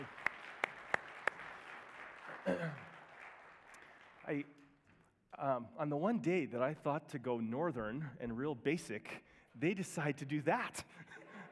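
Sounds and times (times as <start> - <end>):
audience applause: 0.0 - 4.5
speech: 2.4 - 2.9, 4.3 - 4.6, 5.4 - 11.2.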